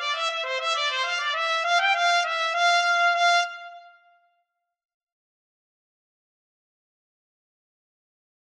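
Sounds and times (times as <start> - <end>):
trumpet duet: 0.0 - 4.0.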